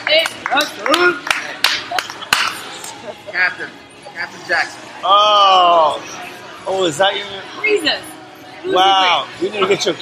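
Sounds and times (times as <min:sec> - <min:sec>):
scattered claps: 0:00.0 - 0:03.0
speech: 0:00.1 - 0:01.3, 0:03.3 - 0:10.0.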